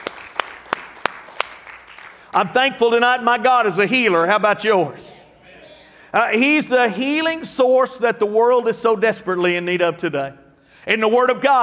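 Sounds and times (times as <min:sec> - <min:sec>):
audience clapping: 0:00.0 - 0:03.0
speech: 0:02.3 - 0:05.1, 0:06.1 - 0:11.6.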